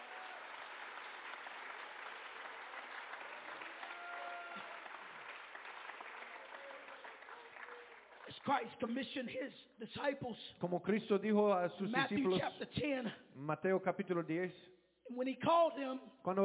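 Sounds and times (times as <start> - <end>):
audience clapping hands: 0.0 - 9.1
speech: 8.4 - 16.4.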